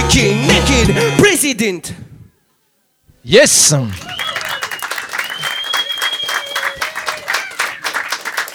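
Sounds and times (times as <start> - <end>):
speech: 0.2 - 2.1, 3.2 - 4.4
audience applause: 3.8 - 8.5
shrill sustained whistle: 4.0 - 7.9.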